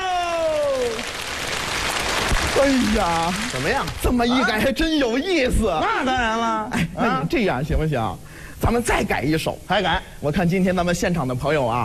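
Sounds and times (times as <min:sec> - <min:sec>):
audience applause at a live comedic performance: 0:00.0 - 0:04.3
speech: 0:02.6 - 0:11.8.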